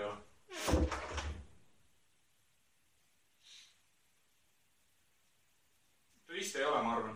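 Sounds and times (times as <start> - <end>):
soft hiss: 0.0 - 7.1
door thudding shut: 0.6 - 1.5.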